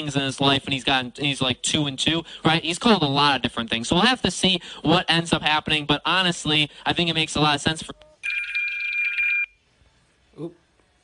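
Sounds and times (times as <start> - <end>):
speech: 0.0 - 8.1, 10.4 - 10.6
electronic timer alarm: 8.2 - 9.6.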